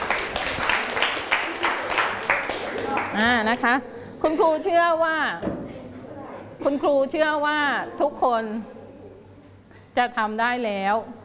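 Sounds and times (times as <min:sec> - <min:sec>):
classroom applause for a student group: 0:00.0 - 0:03.4
speech: 0:03.2 - 0:05.5, 0:06.6 - 0:08.8, 0:10.0 - 0:11.2.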